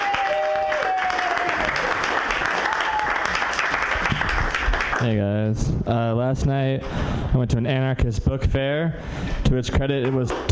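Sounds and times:
audience applause welcoming a comedian on stage: 0.0s - 5.1s
speech: 5.0s - 10.4s.

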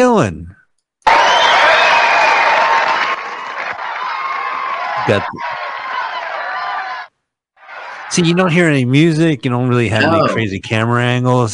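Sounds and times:
speech: 0.0s - 0.5s, 5.0s - 5.6s, 8.1s - 11.5s
large crowd cheering at a sports game: 1.0s - 8.9s, 9.9s - 10.4s.

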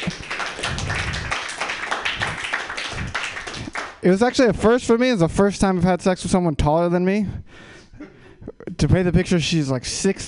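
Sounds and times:
audience applause and clapping: 0.0s - 4.0s
speech: 4.0s - 8.1s, 8.7s - 10.2s.

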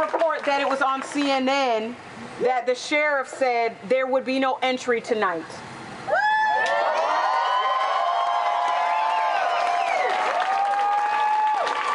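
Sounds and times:
speech: 0.0s - 6.2s
crowd cheering and applauding: 6.1s - 11.9s.

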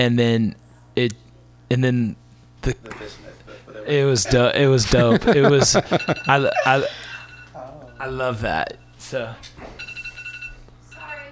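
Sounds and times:
speech: 0.0s - 3.2s, 3.8s - 7.0s, 8.0s - 9.8s
laughter: 2.9s - 7.0s
alarm clock ringing: 5.8s - 9.0s, 9.8s - 11.3s.

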